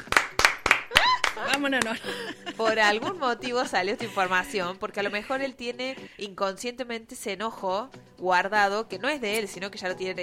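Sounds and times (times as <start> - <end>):
audience clapping along in a steady rhythm: 0.0 - 2.3
laughter: 0.9 - 6.2
speech: 1.4 - 10.2.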